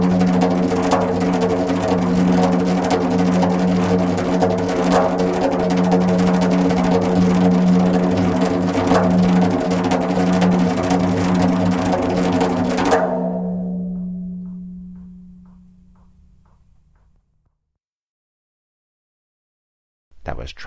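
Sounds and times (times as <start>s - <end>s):
slow djembe rhythm: 0.0s - 16.2s.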